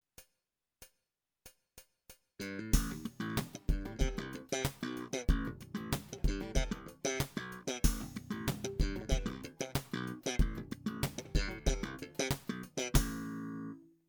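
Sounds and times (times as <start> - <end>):
slap electric bass: 2.5 - 4.5, 5.3 - 13.4.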